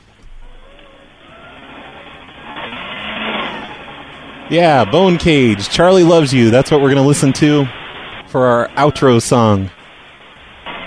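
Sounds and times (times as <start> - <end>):
paper shredder grinding a stack of sheets over a phone line: 1.1 - 8.9
speech: 4.5 - 9.8.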